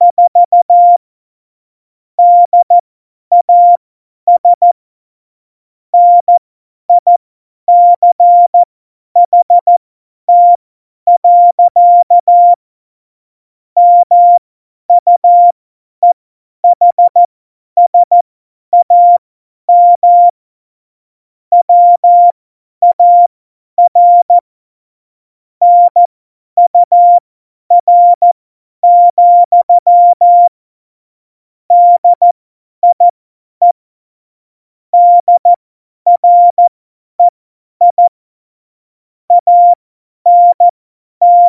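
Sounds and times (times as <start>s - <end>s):
CW Morse code at tempo 70: 0.0s - 1.0s, 2.2s - 4.8s, 6.0s - 6.3s, 7.0s - 12.6s, 13.8s - 14.4s, 15.0s - 17.3s, 17.9s - 18.2s, 18.8s - 20.3s, 21.5s - 24.4s, 25.6s - 30.5s, 31.7s - 33.8s, 35.0s - 38.1s, 39.3s - 41.4s.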